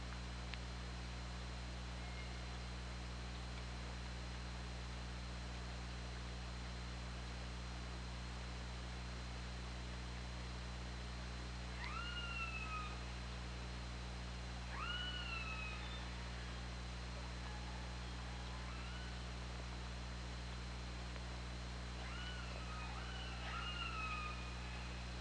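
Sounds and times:
low electrical hum: 0:00.0 - 0:25.1
killer whale calls: 0:11.8 - 0:13.0, 0:14.7 - 0:16.6, 0:17.4 - 0:19.4, 0:22.0 - 0:25.1.

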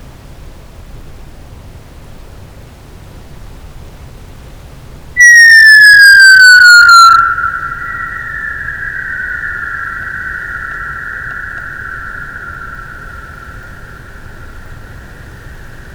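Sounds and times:
Physeter macrocephalus sperm whale clicks: 0:05.2 - 0:15.9.

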